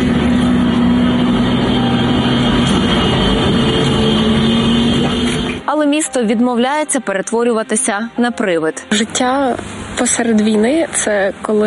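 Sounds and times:
large drones humming overhead: 0:00.0 - 0:05.7, 0:08.8 - 0:11.6
speech: 0:06.2 - 0:11.6.

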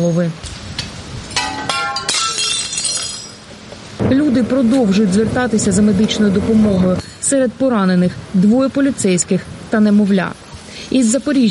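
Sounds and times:
speech: 0:00.0 - 0:00.5, 0:04.1 - 0:11.4
glass shards tinkling: 0:01.4 - 0:03.5
remaining window glass knocked out and shattering: 0:01.4 - 0:03.5.

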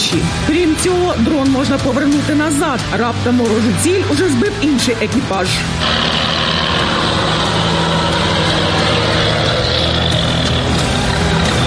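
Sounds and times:
speech: 0:00.1 - 0:06.2
Stormer anti-aircraft vehicle engine rumbling: 0:05.8 - 0:11.6.

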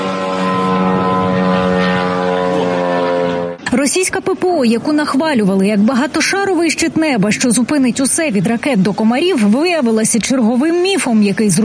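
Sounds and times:
drone propeller buzzing: 0:00.0 - 0:03.7
speech: 0:04.0 - 0:11.6.

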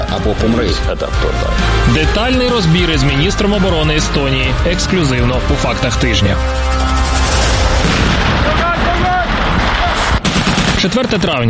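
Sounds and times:
speech: 0:00.1 - 0:07.2, 0:10.8 - 0:11.4
explosions during military exercises: 0:06.8 - 0:11.2
gunshots: 0:07.0 - 0:11.4.

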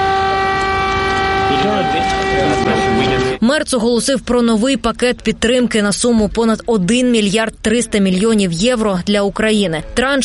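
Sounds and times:
air raid siren in the capital: 0:00.0 - 0:03.4
speech: 0:01.6 - 0:10.2.

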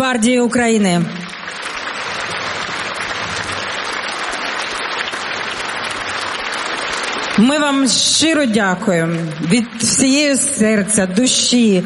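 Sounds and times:
speech: 0:00.0 - 0:01.4, 0:07.4 - 0:11.8
audience applause: 0:01.2 - 0:10.5.

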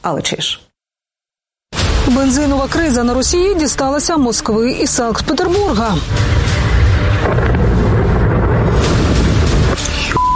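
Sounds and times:
speech: 0:00.0 - 0:00.7, 0:02.0 - 0:06.5
explosion with mushroom cloud: 0:06.1 - 0:10.3.

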